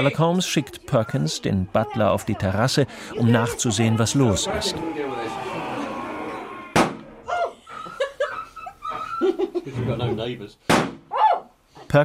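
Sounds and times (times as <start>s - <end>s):
speech: 0.0s - 5.5s, 9.7s - 11.0s
laughter: 2.9s - 10.4s
gunshots killing the hound: 6.7s - 7.1s.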